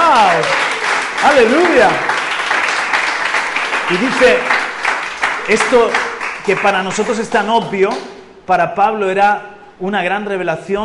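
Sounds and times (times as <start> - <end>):
audience applauding: 0.0 - 8.1
speech: 1.4 - 2.1, 3.9 - 4.6, 5.5 - 10.8.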